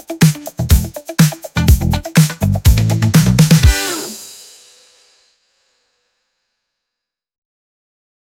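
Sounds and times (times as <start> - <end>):
disco music: 0.0 - 4.4.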